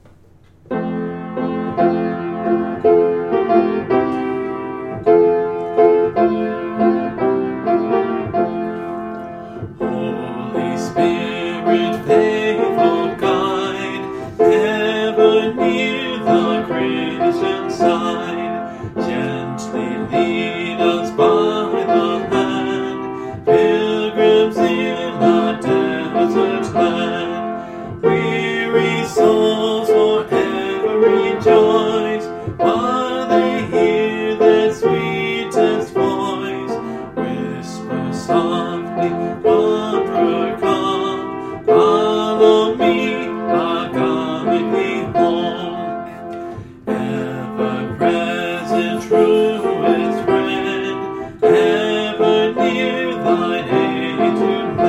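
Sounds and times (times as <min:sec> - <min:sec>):
person singing a hymn from the hymnbook: 0:01.1 - 0:54.8.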